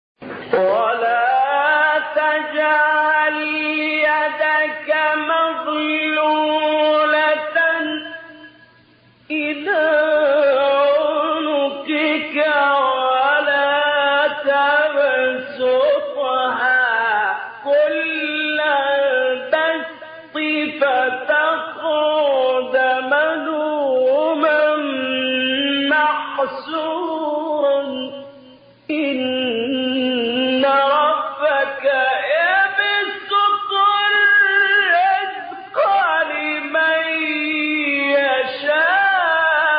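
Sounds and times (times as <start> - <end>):
person reciting a surah: 0.4 - 8.7, 9.3 - 39.7.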